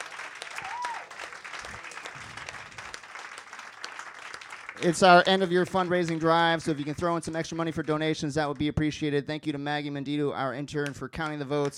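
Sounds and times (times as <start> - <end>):
audience applause: 0.0 - 7.1
speech: 4.8 - 11.7.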